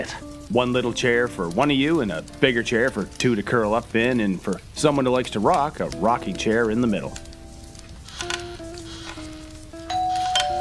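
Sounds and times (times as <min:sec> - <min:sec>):
speech: 0:00.0 - 0:07.3
hiss bursts: 0:07.3 - 0:10.3
doorbell chime melody: 0:09.9 - 0:10.5.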